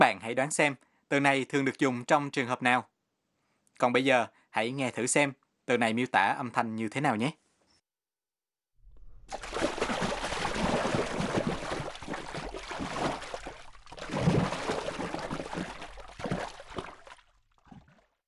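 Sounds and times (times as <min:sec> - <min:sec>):
speech: 0:00.0 - 0:02.9, 0:03.8 - 0:07.4, 0:09.3 - 0:09.7
water being slapped hard and splashing: 0:09.0 - 0:18.2.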